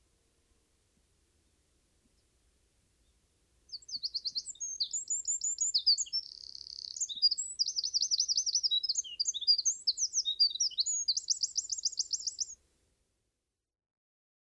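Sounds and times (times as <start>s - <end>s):
Eurasian wren song of fast high tumbling notes and a ringing trill: 3.7s - 12.6s.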